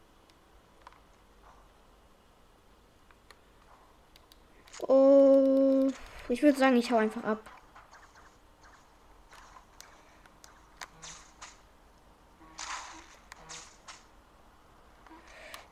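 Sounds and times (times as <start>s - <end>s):
Spider-Man web shooters firing in Fortnite: 5.7s - 11.8s, 12.4s - 14.2s
speech: 6.3s - 7.6s.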